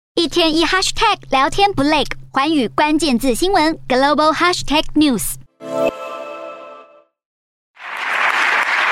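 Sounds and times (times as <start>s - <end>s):
speech: 0.2s - 5.9s
bright musical sting: 5.6s - 7.1s
parliament members' standing applause: 7.8s - 8.9s.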